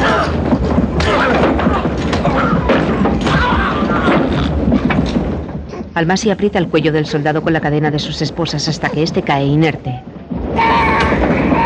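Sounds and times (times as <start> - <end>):
blows struck in a fight: 0.0 - 6.8, 10.0 - 11.6
clattering rumble: 0.0 - 11.6
speech: 6.0 - 10.8.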